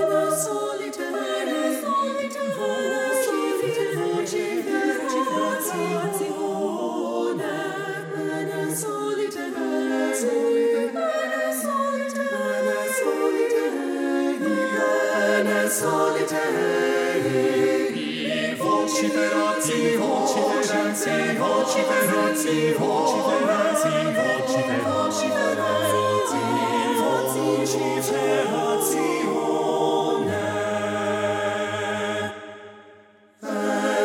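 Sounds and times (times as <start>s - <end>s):
soprano singing a choral work: 0.0s - 32.4s, 33.4s - 34.0s.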